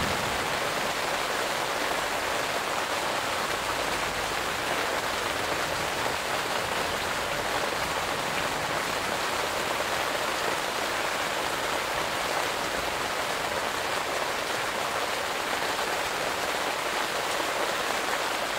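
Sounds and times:
summer rain falling in a garden: 0.0 - 18.5.

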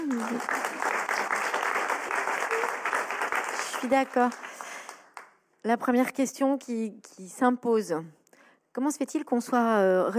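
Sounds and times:
audience applause: 0.0 - 5.3
speech: 3.8 - 4.5, 5.6 - 8.2, 8.8 - 10.1.

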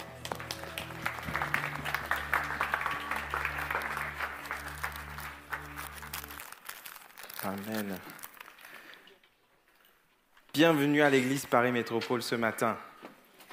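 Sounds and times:
church congregation clapping after a communion prayer: 0.0 - 6.6
speech: 7.4 - 8.2, 10.6 - 12.9.

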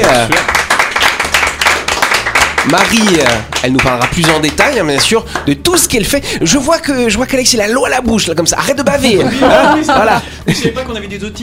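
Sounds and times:
studio applause for guest: 0.0 - 6.0
speech: 0.2 - 0.6, 2.6 - 11.4
laughter: 8.6 - 11.0.

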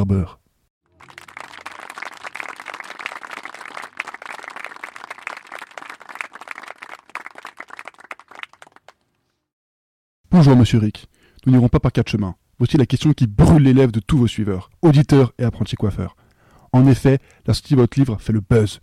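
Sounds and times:
speech: 0.0 - 0.4, 10.4 - 18.8
audience applause: 0.9 - 9.0.

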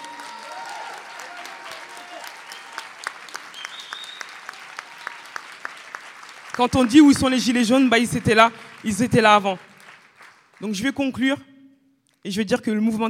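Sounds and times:
crowd applauding: 0.0 - 11.0
speech: 6.6 - 9.7, 10.6 - 11.5, 12.2 - 13.0.

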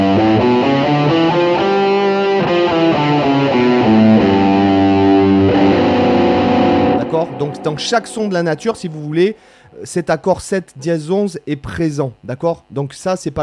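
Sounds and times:
distorted electric guitar playing a scale of harmonics: 0.0 - 10.0
speech: 7.8 - 13.4.

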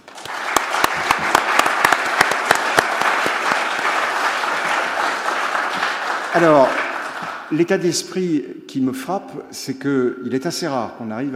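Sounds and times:
audience applause: 0.0 - 7.7
speech: 6.3 - 6.8, 7.5 - 11.3.

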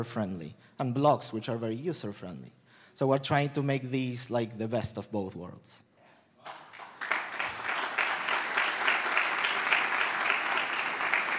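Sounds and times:
speech: 0.0 - 6.6
audience applause: 6.5 - 11.3.

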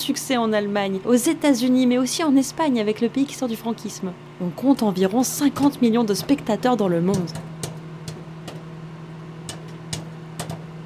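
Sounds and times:
speech: 0.0 - 7.5
low mechanical hum: 0.0 - 10.8
popcorn popping while cooking: 6.2 - 10.8.

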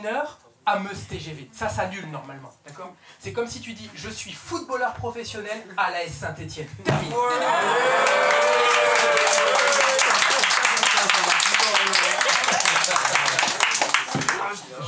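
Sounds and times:
speech: 0.0 - 10.1, 14.5 - 14.8
crowd cheering: 7.1 - 14.5
audience applause: 7.2 - 14.5.

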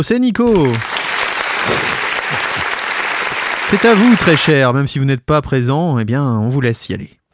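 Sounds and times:
speech: 0.0 - 1.0, 1.6 - 2.6, 3.7 - 7.2
applause: 0.5 - 4.6.

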